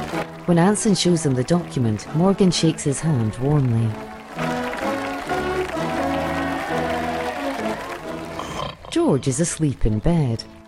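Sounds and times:
adults and children clapping along: 0.0 - 8.7
speech: 0.5 - 4.5, 9.0 - 10.6
brass band playing tuneful music: 3.9 - 8.4.

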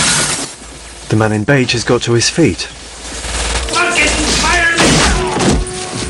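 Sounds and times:
speech: 1.1 - 2.8
gunshots of a man firing two guns in a film scene: 3.4 - 5.8.

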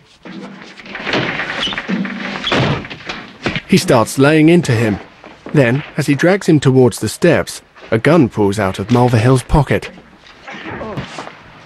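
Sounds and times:
man slammed against a glass door on a front porch: 0.9 - 3.7
speech: 3.7 - 10.0.

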